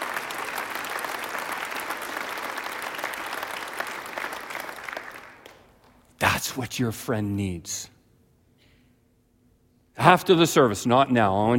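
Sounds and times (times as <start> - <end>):
audience applauding: 0.0 - 5.9
speech: 6.4 - 8.0, 10.0 - 11.5.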